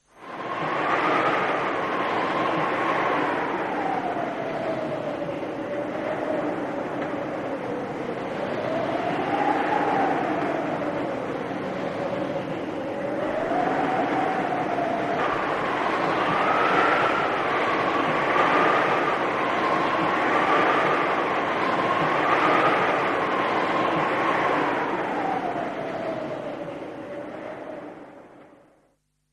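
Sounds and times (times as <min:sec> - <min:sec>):
wind: 0:00.0 - 0:28.9.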